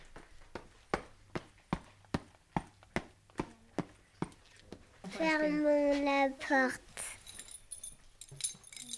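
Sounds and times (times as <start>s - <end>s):
footsteps going down the stairs: 0.0s - 5.0s
speech: 5.2s - 6.9s.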